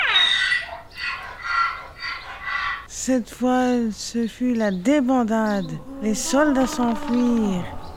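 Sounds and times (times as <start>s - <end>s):
donkey braying loudly: 0.1s - 2.9s, 5.4s - 7.9s
speech: 3.1s - 7.7s.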